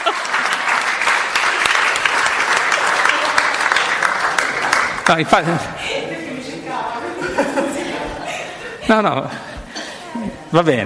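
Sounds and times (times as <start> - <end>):
laughter: 0.0 - 0.6, 5.1 - 10.4
audience applause: 0.0 - 5.6
speech: 5.1 - 6.0, 8.9 - 9.4, 10.5 - 10.8.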